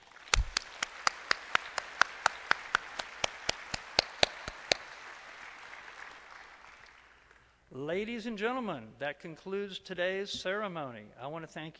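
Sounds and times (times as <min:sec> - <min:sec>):
round of applause: 0:00.0 - 0:07.6
speech: 0:07.8 - 0:11.7.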